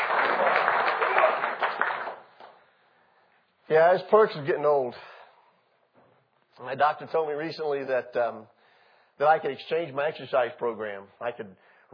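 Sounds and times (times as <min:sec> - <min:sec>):
round of applause: 0:00.0 - 0:02.6
speech: 0:03.7 - 0:05.2, 0:06.6 - 0:08.6, 0:09.2 - 0:11.9.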